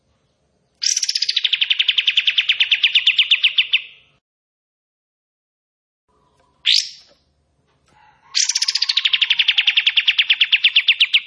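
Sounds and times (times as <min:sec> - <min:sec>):
bulbul trilling: 0:00.8 - 0:04.1, 0:06.2 - 0:07.3, 0:08.3 - 0:11.2.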